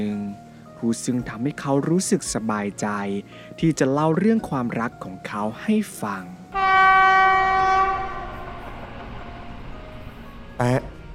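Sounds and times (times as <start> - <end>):
speech: 0.0 - 6.7, 10.6 - 10.9
train horn blast: 6.5 - 10.2
low rumble of a moving train: 6.5 - 11.1.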